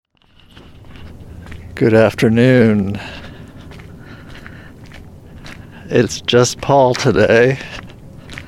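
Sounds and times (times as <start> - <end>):
noise: 0.1 - 8.4
footsteps of a person walking alone: 0.2 - 8.4
speech: 1.8 - 3.2, 5.9 - 7.8.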